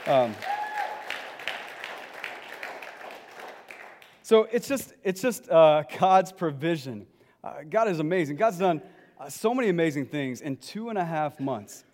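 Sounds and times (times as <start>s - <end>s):
light scattered applause for the band: 0.0s - 4.2s
speech: 0.1s - 0.5s, 4.3s - 11.9s.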